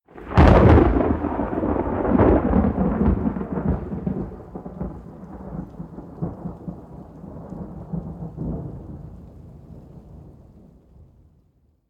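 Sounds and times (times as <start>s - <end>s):
lightning strike: 0.2s - 6.6s.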